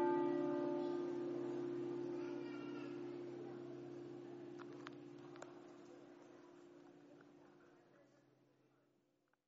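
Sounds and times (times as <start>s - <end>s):
bells ringing: 0.0s - 7.0s.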